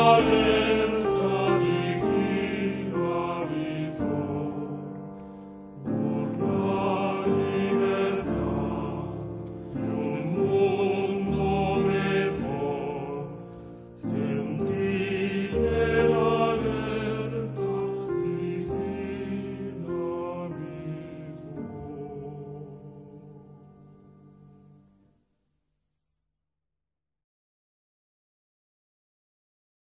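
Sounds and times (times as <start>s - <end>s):
night singing in the trenches: 0.0s - 5.1s, 5.8s - 24.2s.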